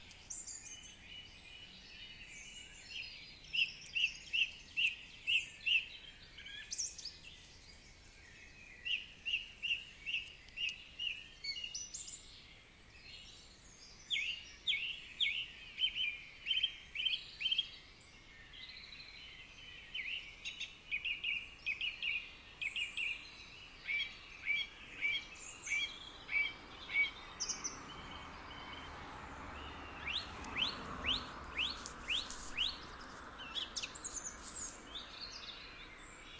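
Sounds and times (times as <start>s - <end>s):
birds: 0.0s - 36.3s.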